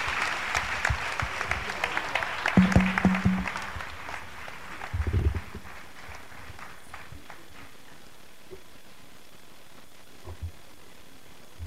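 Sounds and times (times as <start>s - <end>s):
applause at a Christian gathering welcoming a speaker: 0.0s - 8.2s.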